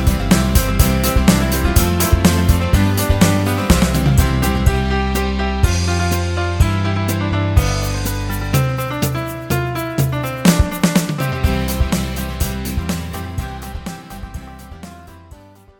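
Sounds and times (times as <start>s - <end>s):
low key electric band: 0.0s - 15.7s.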